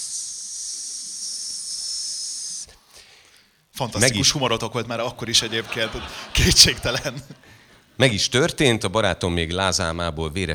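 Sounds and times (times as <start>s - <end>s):
air hissing out of an opened valve: 0.0s - 2.8s
laughter: 3.8s - 8.8s
speech: 3.8s - 10.5s.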